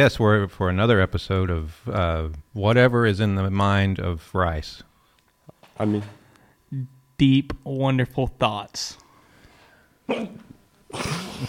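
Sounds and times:
speech: 0.0 - 4.9, 5.8 - 9.0, 10.1 - 11.4
person hiccuping: 10.1 - 11.4.

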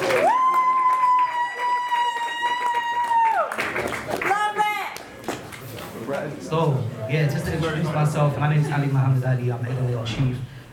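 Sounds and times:
audience applause: 0.0 - 6.3
speech: 6.5 - 10.5.

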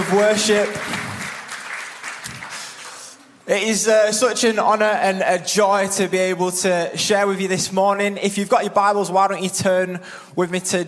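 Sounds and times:
crowd clapping: 0.0 - 3.4
speech: 0.1 - 1.0, 3.5 - 10.8.

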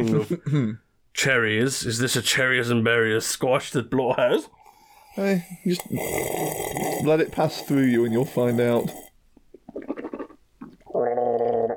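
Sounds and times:
speech: 0.0 - 4.6, 5.2 - 9.0
gargling noise: 5.2 - 11.7.

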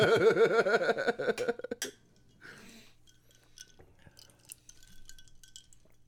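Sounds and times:
laughter: 0.0 - 1.8
ice clinking in drinking glasses: 2.2 - 6.0.

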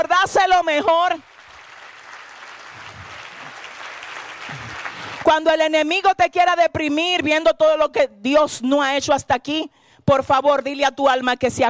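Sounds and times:
speech: 0.0 - 1.3, 5.3 - 11.6
audience applauding: 1.2 - 5.3.

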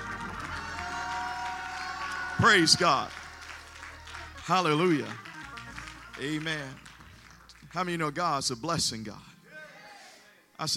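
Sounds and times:
audience clapping hands: 0.0 - 8.6
speech: 2.4 - 3.2, 4.5 - 5.3, 6.2 - 6.9, 7.7 - 9.3, 10.6 - 10.7.

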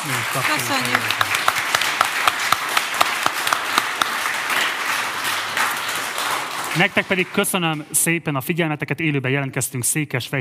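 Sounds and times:
speech: 0.0 - 1.4, 6.8 - 10.4
audience applause: 0.0 - 8.0.

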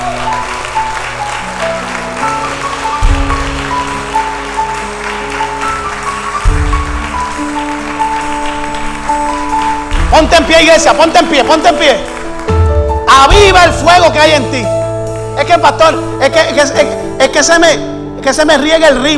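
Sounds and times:
audience applause: 0.0 - 13.4
heavy bass thumps: 6.5 - 7.1, 12.8 - 13.9
speech: 10.1 - 12.1, 13.1 - 14.8, 15.4 - 19.1.

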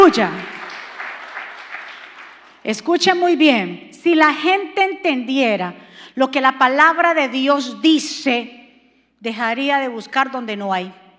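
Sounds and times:
speech: 0.0 - 0.6, 2.6 - 8.6, 9.2 - 11.0
crowd clapping: 0.0 - 2.7.

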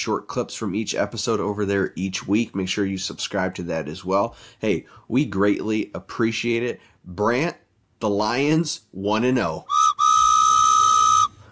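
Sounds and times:
speech: 0.0 - 9.8
steam train whistle: 9.7 - 11.4.

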